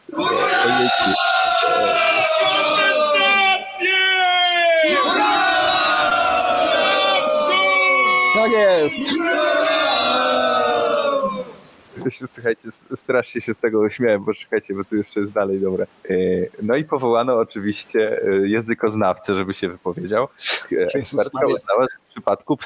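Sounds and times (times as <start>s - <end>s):
group of voices cheering, yelling and whooping: 0.1s - 11.6s
speech: 0.7s - 1.3s, 8.8s - 9.7s, 12.0s - 22.6s.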